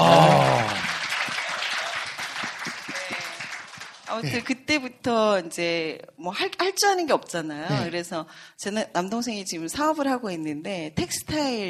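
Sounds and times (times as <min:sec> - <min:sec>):
audience applause: 0:00.0 - 0:04.5
speech: 0:04.2 - 0:11.6.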